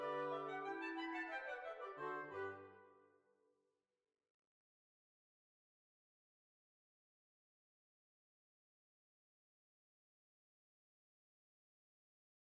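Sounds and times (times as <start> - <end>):
hornpipe tune: 0.0 - 3.0.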